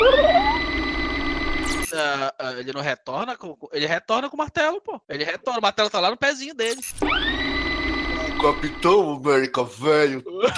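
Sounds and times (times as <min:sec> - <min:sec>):
tape rewinding sound effect: 0:00.0 - 0:02.0, 0:06.6 - 0:09.0
speech: 0:02.0 - 0:07.6, 0:08.4 - 0:10.5.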